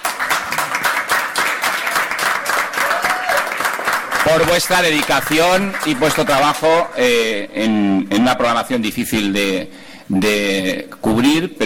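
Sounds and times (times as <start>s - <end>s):
audience applause: 0.0s - 6.6s
speech: 4.3s - 11.6s.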